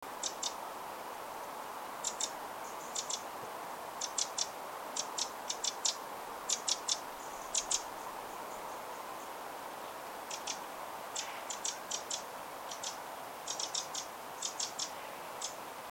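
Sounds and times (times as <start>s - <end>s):
soft hiss of background noise: 0.0s - 15.8s
Eurasian wren calls: 0.1s - 0.6s, 2.0s - 3.4s, 4.0s - 9.4s, 10.2s - 15.6s.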